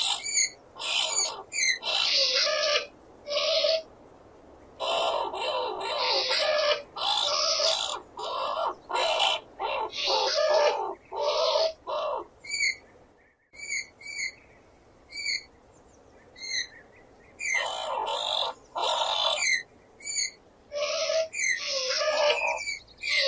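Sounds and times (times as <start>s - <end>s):
skunk: 0.0s - 3.9s, 4.8s - 12.8s, 17.4s - 23.2s.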